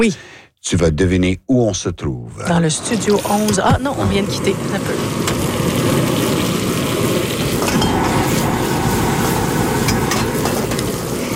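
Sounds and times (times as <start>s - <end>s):
speech: 0.0s - 6.1s
propane burner flame: 2.8s - 11.3s.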